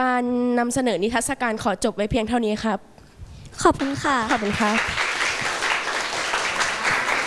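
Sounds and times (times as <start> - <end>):
speech: 0.0 - 2.9, 3.6 - 5.0
audience applause: 3.8 - 7.2.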